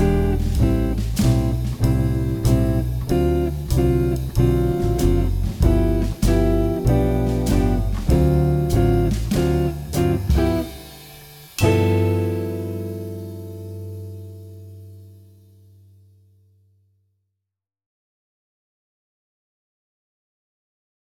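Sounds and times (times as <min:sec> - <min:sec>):
jazz blues music: 0:00.0 - 0:15.7.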